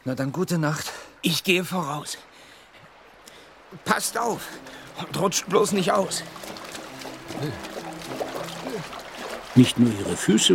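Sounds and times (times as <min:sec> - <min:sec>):
speech: 0:00.0 - 0:02.3, 0:03.7 - 0:06.6, 0:07.3 - 0:09.0, 0:09.6 - 0:10.5
heavy rain pouring: 0:03.3 - 0:10.5.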